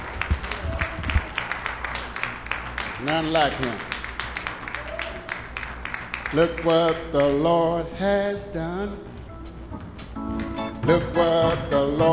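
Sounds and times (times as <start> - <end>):
audience hand clapping: 0.0 - 7.6
speech: 3.0 - 3.9, 6.3 - 9.1, 10.9 - 12.1.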